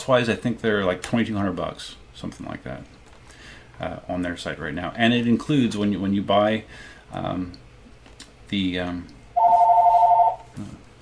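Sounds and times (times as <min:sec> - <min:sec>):
speech: 0:00.0 - 0:03.0, 0:03.8 - 0:07.6, 0:08.5 - 0:09.2, 0:10.6 - 0:10.8
mobile phone ringtone for an incoming call: 0:09.4 - 0:10.5.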